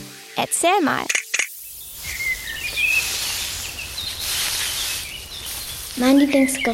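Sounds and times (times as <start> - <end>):
speech: 0.5 - 1.2, 6.0 - 6.7
many birds chirping: 1.5 - 6.7
rustling in bushes: 1.5 - 6.7.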